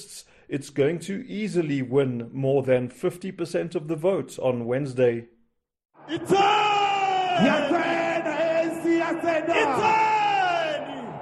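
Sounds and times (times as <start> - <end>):
speech: 0.0 - 5.4, 6.1 - 6.8, 7.4 - 8.0
thousands of supporters cheering at an ANC election rally in a Soweto stadium: 6.0 - 11.2.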